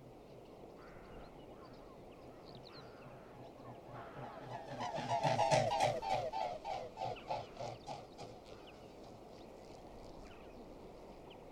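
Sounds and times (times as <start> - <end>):
mute swan honking: 3.9 - 8.4.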